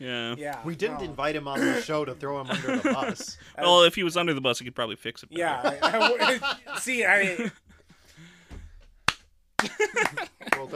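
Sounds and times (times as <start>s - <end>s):
speech: 0.0s - 7.7s, 9.7s - 10.7s
laughter: 1.6s - 3.6s, 5.4s - 7.7s, 9.6s - 10.7s
slow hand claps: 9.0s - 10.7s.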